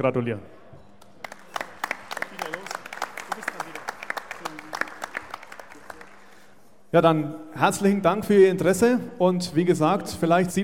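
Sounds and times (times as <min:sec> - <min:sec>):
speech: 0:00.0 - 0:00.6, 0:06.9 - 0:10.6
audience applauding in a hall: 0:01.1 - 0:06.6.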